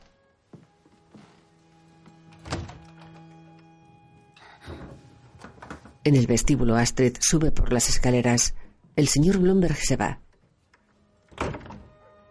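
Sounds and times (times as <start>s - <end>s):
door opening: 2.0s - 3.8s, 4.4s - 6.2s, 10.8s - 12.1s
speech: 6.0s - 10.2s.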